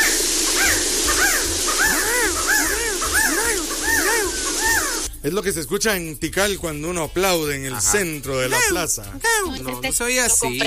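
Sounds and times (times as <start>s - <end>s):
resplendent quetzal call: 0.0s - 5.1s
speech: 5.2s - 10.6s.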